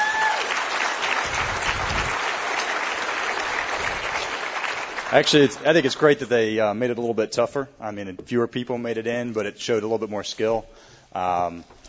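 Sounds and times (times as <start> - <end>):
audience applause: 0.0 - 6.0
speech: 5.1 - 11.8.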